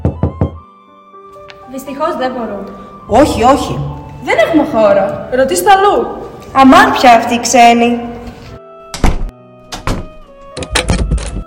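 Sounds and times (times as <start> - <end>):
speech: 1.7 - 8.1
doors closing: 8.9 - 11.4.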